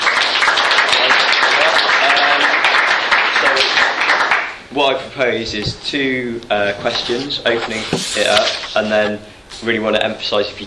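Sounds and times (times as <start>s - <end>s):
audience applause: 0.0s - 4.6s
speech: 4.8s - 10.6s.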